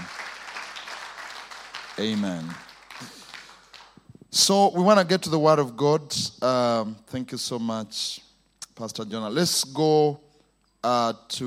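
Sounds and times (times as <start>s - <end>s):
audience hand clapping: 0.0s - 4.1s
speech: 2.0s - 3.2s, 4.4s - 10.2s, 10.8s - 11.4s.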